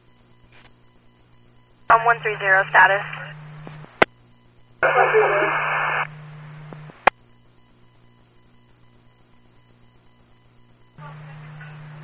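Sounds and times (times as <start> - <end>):
radio static breaking up a transmission: 1.9 - 4.1, 4.8 - 7.1
speech: 2.0 - 3.2.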